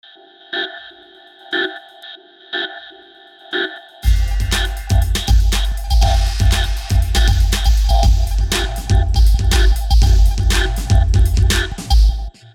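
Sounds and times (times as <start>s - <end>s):
Softube Vocoder drum loop: 4.0s - 12.5s.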